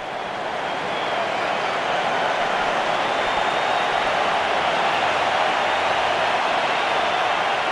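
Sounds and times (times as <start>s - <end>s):
large stadium crowd clapping and cheering: 0.0s - 7.6s.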